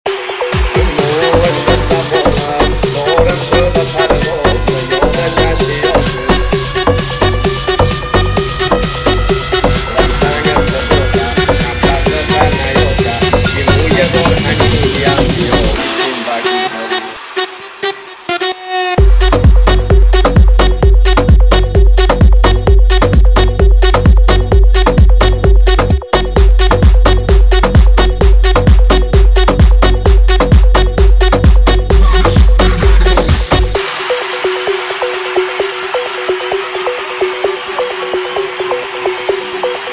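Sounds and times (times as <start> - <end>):
remix music: 0.0 - 39.9.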